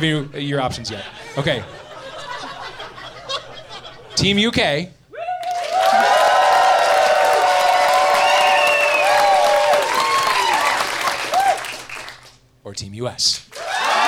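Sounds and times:
speech: 0:00.0 - 0:01.8, 0:04.2 - 0:05.0, 0:12.7 - 0:13.5
laughter: 0:00.9 - 0:04.2
audience applause: 0:05.3 - 0:12.4, 0:13.5 - 0:14.0.

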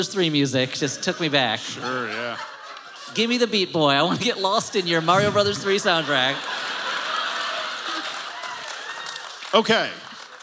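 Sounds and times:
speech: 0:00.0 - 0:06.6, 0:09.5 - 0:10.0
laughter: 0:00.8 - 0:10.4
audience clapping: 0:05.6 - 0:10.4.

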